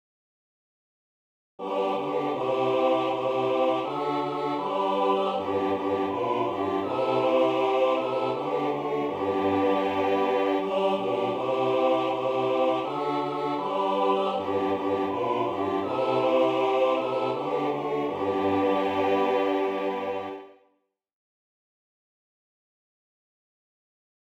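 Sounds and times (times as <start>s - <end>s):
choir singing all parts: 1.6s - 20.6s.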